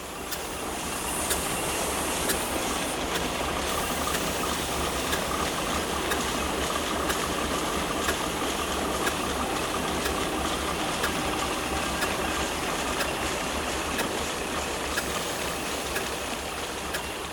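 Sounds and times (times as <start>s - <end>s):
steam engine running: 0.0s - 17.3s
regular mechanical ticks and knocks: 4.0s - 17.3s.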